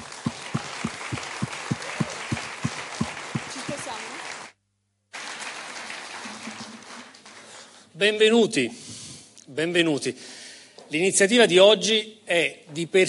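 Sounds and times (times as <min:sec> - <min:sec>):
regular low thumping beat: 0:00.0 - 0:03.7
large audience applause: 0:00.0 - 0:07.6
speech: 0:08.0 - 0:08.8, 0:09.6 - 0:13.0.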